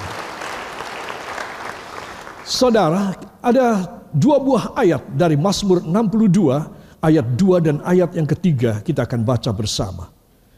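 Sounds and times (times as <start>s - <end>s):
audience applause: 0.0s - 2.5s
speech: 2.5s - 10.2s.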